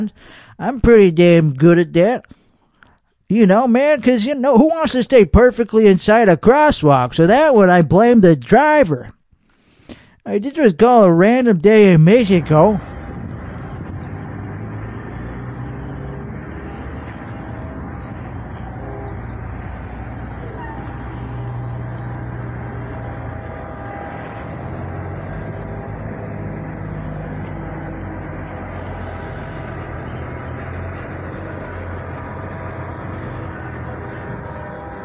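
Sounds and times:
speech: 0:00.0 - 0:02.4, 0:03.3 - 0:09.2, 0:09.9 - 0:12.9
train approaching: 0:11.1 - 0:35.0.

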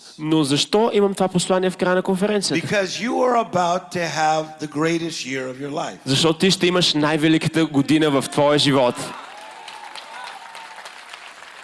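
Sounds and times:
speech: 0:00.2 - 0:09.2
audience applause: 0:08.5 - 0:11.6.

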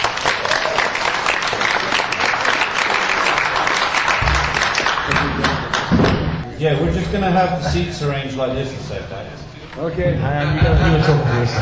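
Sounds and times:
audience applause welcoming back a guest: 0:00.0 - 0:06.0
speech: 0:06.6 - 0:11.6
laughter: 0:10.0 - 0:11.6.

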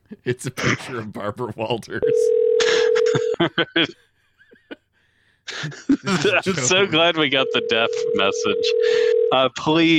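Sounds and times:
speech: 0:00.1 - 0:02.4, 0:03.1 - 0:04.0, 0:05.5 - 0:09.9
laughter: 0:02.0 - 0:07.2
dial-up modem tones: 0:07.4 - 0:09.4.

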